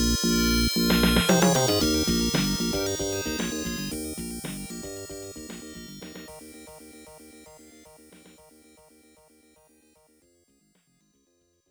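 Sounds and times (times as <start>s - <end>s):
Round 5 background music: 0.0s - 6.8s.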